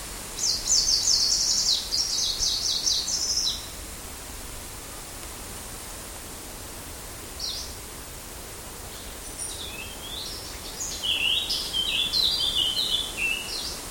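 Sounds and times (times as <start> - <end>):
green warbler singing: 0.4 - 3.8, 7.4 - 7.8, 8.9 - 13.8.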